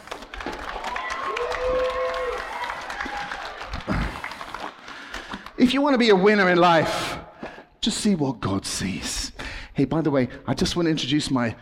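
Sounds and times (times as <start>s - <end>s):
audience clapping: 0.0s - 6.1s
speech: 5.6s - 7.2s, 7.8s - 11.6s.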